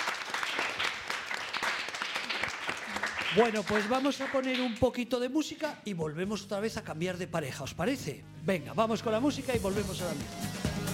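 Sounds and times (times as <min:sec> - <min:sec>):
audience applause: 0:00.0 - 0:04.7
speech: 0:03.3 - 0:10.6.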